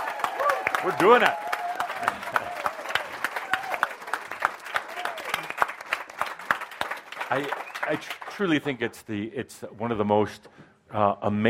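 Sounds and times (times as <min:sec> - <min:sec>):
crowd applause: 0:00.0 - 0:08.7
speech: 0:00.8 - 0:01.4, 0:07.3 - 0:11.4.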